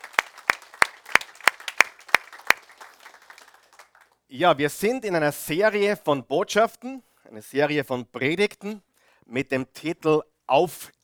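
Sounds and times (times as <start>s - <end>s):
audience applause: 0.0s - 4.2s
speech: 4.3s - 11.0s.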